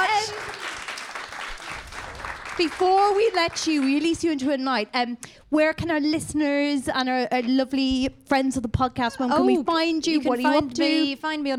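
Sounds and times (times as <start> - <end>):
audience applause: 0.0 - 4.0
speech: 2.6 - 11.5.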